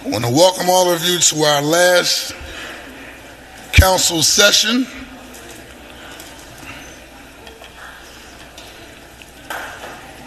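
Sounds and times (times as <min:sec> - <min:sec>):
speech: 0:00.0 - 0:02.6, 0:03.8 - 0:05.2
faint scattered clapping: 0:07.4 - 0:10.2.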